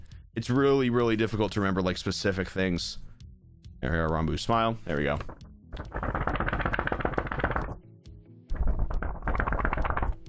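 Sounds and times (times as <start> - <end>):
speech: 0.4 - 3.0, 3.8 - 6.2
drying out ink on a paper card: 5.0 - 7.8, 8.5 - 10.2.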